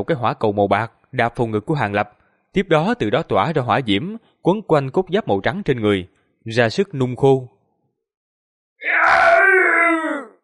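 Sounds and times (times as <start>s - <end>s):
speech: 0.0s - 7.6s
beast-like roaring scream: 8.8s - 10.4s.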